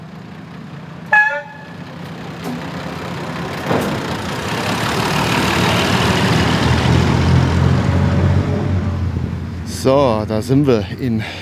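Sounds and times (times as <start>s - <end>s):
rail bus engine running: 0.0s - 11.4s
rail bus horn toot: 1.1s - 1.8s
speech: 9.8s - 11.4s.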